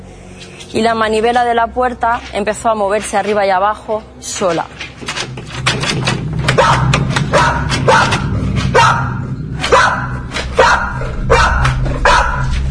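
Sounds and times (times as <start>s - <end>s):
speech: 0.7s - 5.2s
dog barking: 6.6s - 12.6s.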